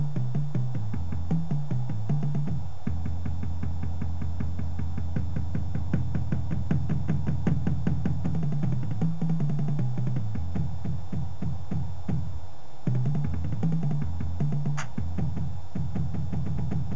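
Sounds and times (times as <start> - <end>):
bass: 0.0 - 16.9.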